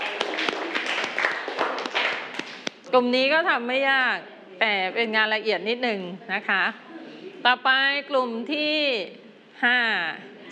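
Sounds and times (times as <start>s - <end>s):
scattered clapping for a group presenting fabric scrap decorations: 0.0s - 2.9s
speech: 3.0s - 6.8s, 7.4s - 10.3s.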